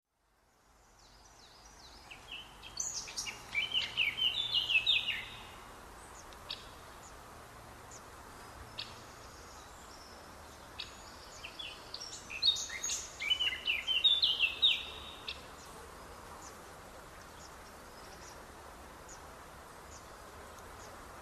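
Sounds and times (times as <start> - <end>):
constant low hiss: 0.1 - 21.1
Eurasian blackcap song: 1.0 - 6.8, 8.8 - 15.6.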